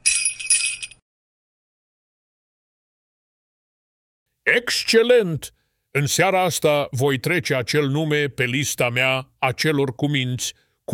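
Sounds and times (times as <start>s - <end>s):
sleigh bells jingling: 0.0s - 1.0s
speech: 4.5s - 10.9s.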